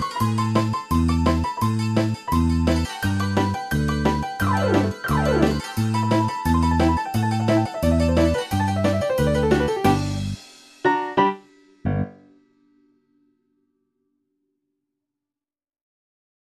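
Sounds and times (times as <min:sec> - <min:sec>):
sirtaki folk dance music: 0:00.0 - 0:11.1.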